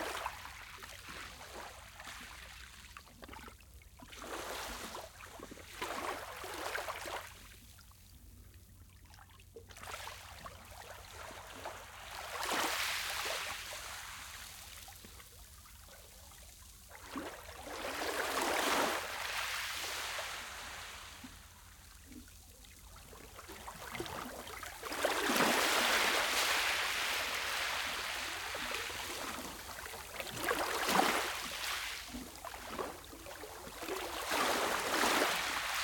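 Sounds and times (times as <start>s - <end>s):
gentle waves on a small beach with echo: 4.1s - 7.3s, 9.9s - 14.9s, 17.0s - 22.2s, 23.4s - 35.8s.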